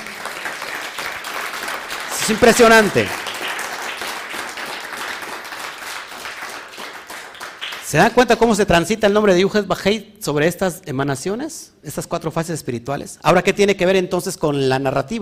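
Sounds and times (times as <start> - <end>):
audience applause: 0.0 - 8.0
speech: 2.3 - 3.2, 7.9 - 15.2.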